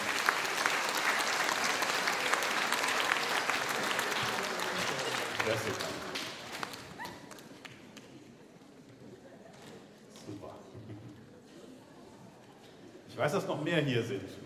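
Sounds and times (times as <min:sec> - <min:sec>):
audience clapping: 0:00.0 - 0:08.3
speech: 0:05.5 - 0:05.9, 0:13.2 - 0:14.4.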